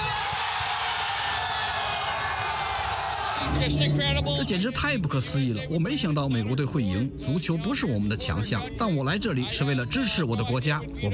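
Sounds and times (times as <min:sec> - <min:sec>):
stadium crowd cheering: 0:00.0 - 0:03.7
speech: 0:03.5 - 0:11.1.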